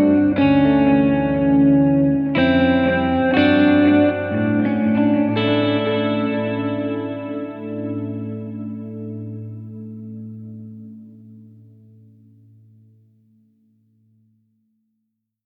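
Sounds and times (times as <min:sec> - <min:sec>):
dramatic guitars: 0:00.0 - 0:11.7.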